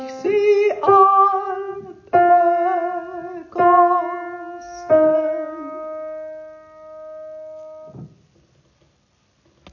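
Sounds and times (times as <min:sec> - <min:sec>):
soprano singing: 0:00.0 - 0:07.0.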